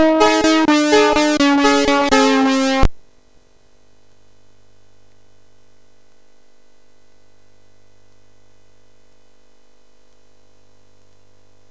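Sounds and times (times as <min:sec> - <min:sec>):
MOS6581R3 sound chip sweep: 0:00.0 - 0:02.9.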